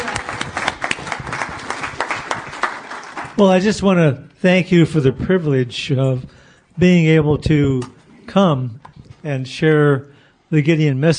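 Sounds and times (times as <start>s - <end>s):
audience applause: 0.0s - 3.4s
speech: 3.4s - 11.1s.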